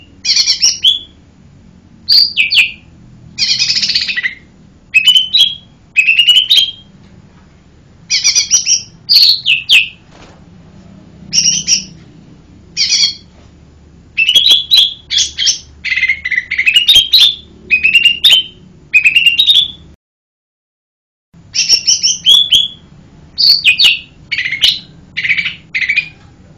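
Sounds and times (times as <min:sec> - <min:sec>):
bird whistles and chatters: 0:00.0 - 0:01.2, 0:02.1 - 0:06.9, 0:08.1 - 0:10.0, 0:11.3 - 0:12.0, 0:12.8 - 0:13.3, 0:14.2 - 0:19.9, 0:21.5 - 0:26.2.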